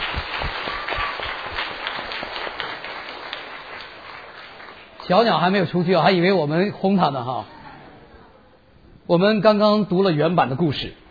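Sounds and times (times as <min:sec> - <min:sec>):
audience applauding: 0:00.0 - 0:05.6
speech: 0:05.1 - 0:07.5, 0:09.1 - 0:11.0.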